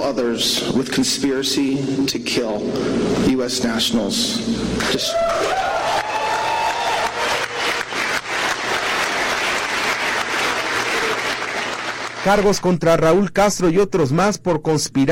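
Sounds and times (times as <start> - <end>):
speech: 0.0 - 6.0, 12.2 - 15.0
audience applause after announcement: 5.3 - 12.6.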